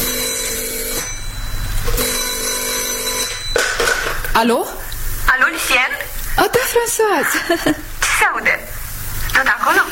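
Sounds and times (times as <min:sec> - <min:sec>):
telephone ringing: 0:00.0 - 0:04.2
low hum: 0:00.0 - 0:09.9
speech: 0:04.4 - 0:08.7, 0:09.4 - 0:09.9.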